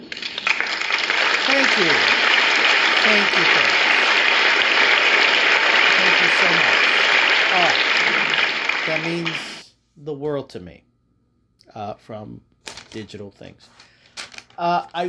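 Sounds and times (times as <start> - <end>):
audience applause: 0.0 - 9.6
speech: 1.8 - 2.2, 3.0 - 3.8, 8.9 - 10.9, 11.7 - 13.9, 14.6 - 15.0.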